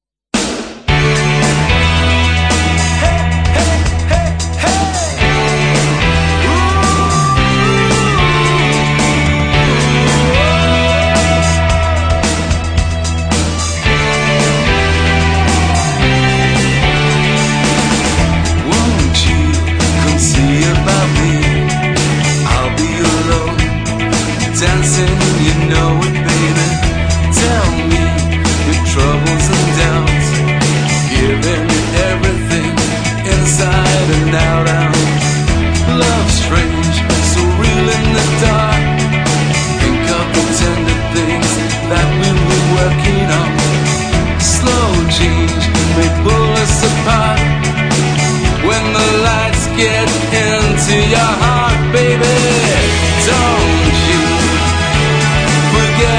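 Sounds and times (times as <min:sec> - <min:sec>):
80s tribute music: 0:00.3 - 0:56.1.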